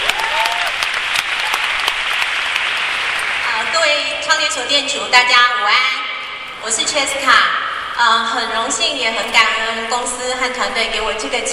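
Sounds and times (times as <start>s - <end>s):
audience applause: 0.0s - 3.7s
speech: 4.3s - 11.5s.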